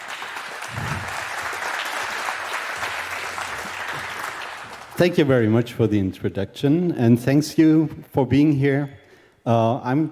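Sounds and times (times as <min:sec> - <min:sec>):
audience applause: 0:00.0 - 0:05.0
speech: 0:05.0 - 0:10.1.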